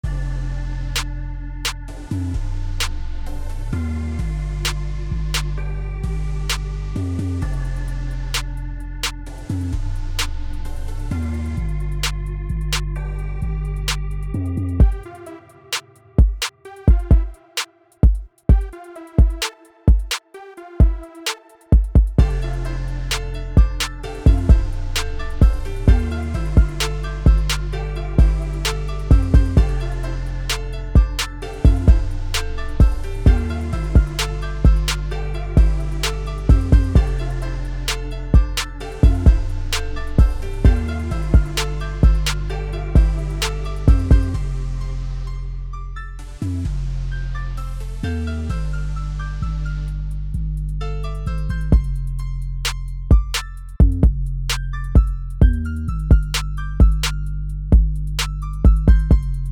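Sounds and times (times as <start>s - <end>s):
instrumental music: 0.0s - 59.5s.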